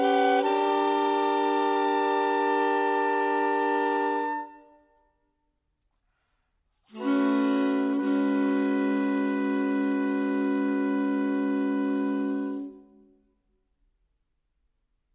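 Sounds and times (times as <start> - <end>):
saxophone: 0.0 - 5.0, 6.9 - 13.2.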